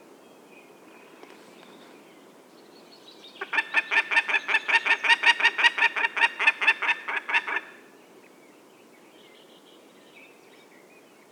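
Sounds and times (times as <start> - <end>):
Peregrine falcon cackling: 3.4 - 7.8.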